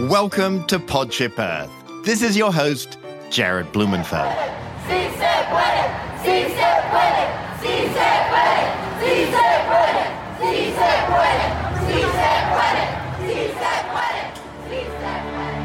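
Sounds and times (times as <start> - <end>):
speech: 0.1 - 7.2
large crowd chanting a rallying cry: 3.9 - 15.6.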